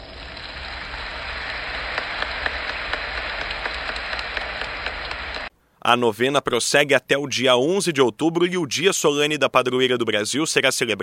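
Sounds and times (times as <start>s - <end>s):
crowd applauding: 0.0s - 5.5s
speech: 5.9s - 11.0s.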